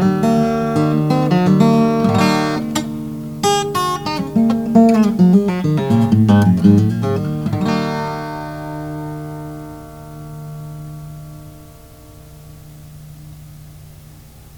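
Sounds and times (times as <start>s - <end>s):
Oscar Schmidt Stella jumbo guitar: 0.0s - 14.5s.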